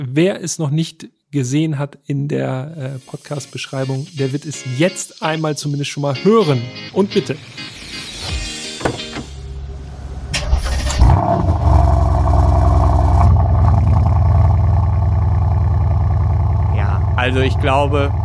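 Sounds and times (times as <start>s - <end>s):
speech: 0.0s - 7.7s, 17.3s - 18.2s
Mercedes-AMG C63 S V8 engine cranking: 10.3s - 11.7s
Mercedes-AMG C63 S V8 engine revving and idling: 11.8s - 18.2s.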